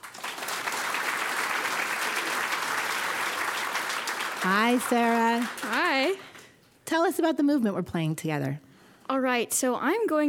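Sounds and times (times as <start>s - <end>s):
audience applause greeting a 14-year-old cellist at a music performance: 0.0s - 6.4s
speech: 4.4s - 6.3s, 6.9s - 10.2s.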